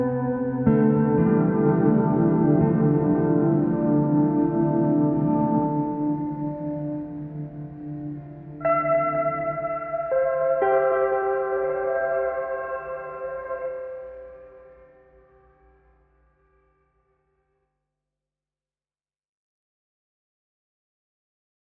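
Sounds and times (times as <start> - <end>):
guitar: 0.0 - 16.0.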